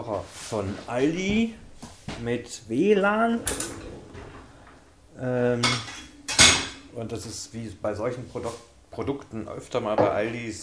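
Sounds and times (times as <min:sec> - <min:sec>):
speech: 0:00.0 - 0:03.9, 0:05.2 - 0:06.0, 0:07.0 - 0:10.6
dishes and cutlery unloaded from dishwasher: 0:05.6 - 0:06.9.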